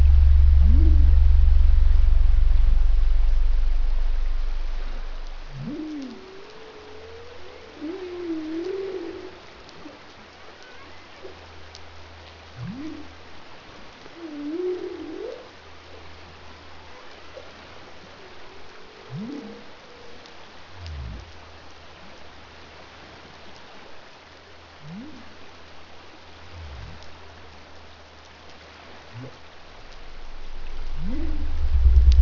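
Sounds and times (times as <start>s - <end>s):
pygmy blue whale three part call: 0.0s - 9.3s, 12.6s - 13.1s, 19.1s - 19.7s, 30.6s - 32.2s.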